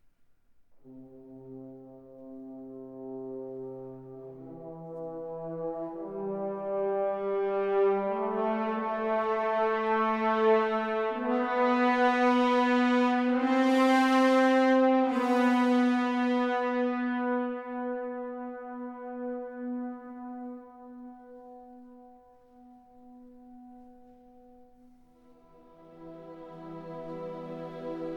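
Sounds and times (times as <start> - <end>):
symphonic synth music: 1.0 - 28.1.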